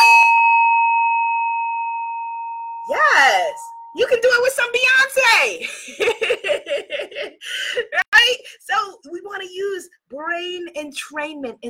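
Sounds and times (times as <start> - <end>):
Tibetan singing bowl struck and ringing: 0.0 - 4.2
speech: 3.5 - 7.8, 8.4 - 11.6.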